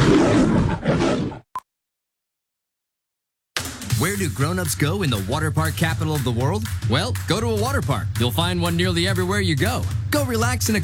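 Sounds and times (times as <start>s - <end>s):
lion roaring: 0.0s - 1.4s
speech: 4.0s - 10.8s.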